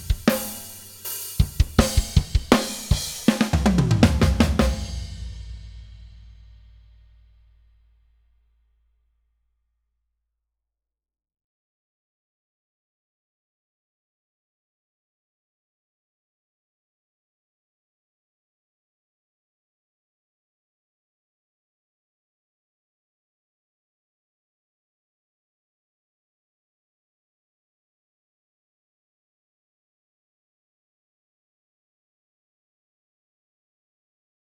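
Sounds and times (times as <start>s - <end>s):
drums: 0.0s - 7.3s.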